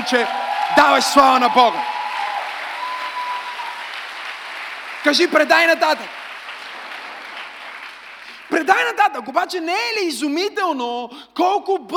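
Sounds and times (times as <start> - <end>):
audience applauding: 0.0 - 8.8
speech: 0.1 - 2.0, 5.0 - 6.2, 8.6 - 11.9.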